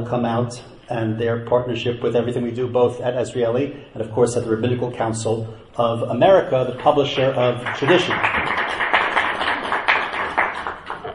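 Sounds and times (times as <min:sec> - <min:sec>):
speech: 0:00.0 - 0:08.5
one person applauding: 0:07.6 - 0:11.1.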